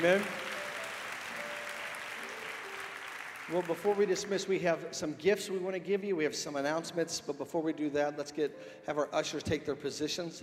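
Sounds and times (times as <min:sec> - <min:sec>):
speech: 0:00.0 - 0:00.4, 0:03.5 - 0:10.4
church congregation clapping in praise: 0:00.0 - 0:04.8.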